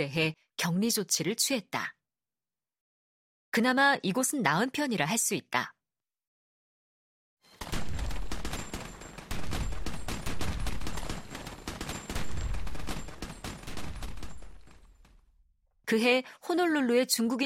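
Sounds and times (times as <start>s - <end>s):
speech: 0.0s - 2.0s, 3.6s - 5.8s, 15.9s - 17.4s
sustained fusillade of gunfire: 7.5s - 15.3s.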